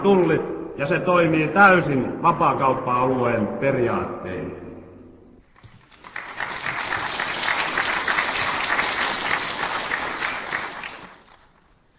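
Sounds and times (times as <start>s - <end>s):
speech: 0.0s - 4.6s
audience applauding: 5.5s - 11.8s.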